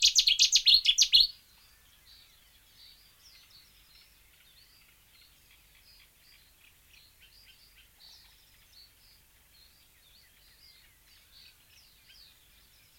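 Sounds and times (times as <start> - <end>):
warbler song of high notes: 0.0 - 12.9.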